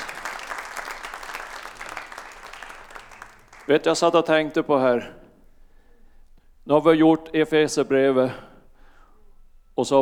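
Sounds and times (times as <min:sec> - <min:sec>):
audience applause: 0:00.0 - 0:04.1
speech: 0:03.7 - 0:05.2, 0:06.7 - 0:08.5, 0:09.8 - 0:09.9.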